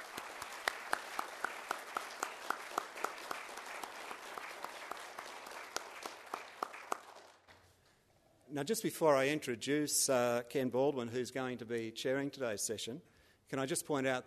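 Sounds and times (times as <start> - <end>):
audience applause: 0.0 - 7.5
speech: 8.5 - 14.2.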